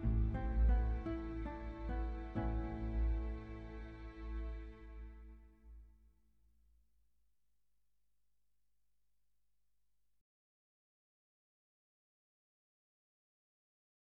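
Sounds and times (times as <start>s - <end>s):
strings: 0.0s - 5.9s.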